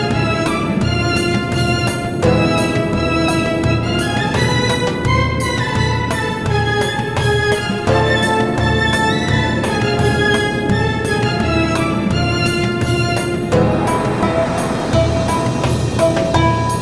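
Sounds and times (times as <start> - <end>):
ambient music: 0.0 - 16.8.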